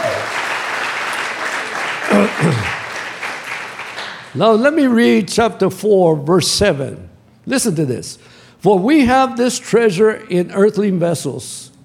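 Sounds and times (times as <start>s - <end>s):
crowd clapping: 0.0s - 4.5s
speech: 2.2s - 2.8s, 4.4s - 11.7s.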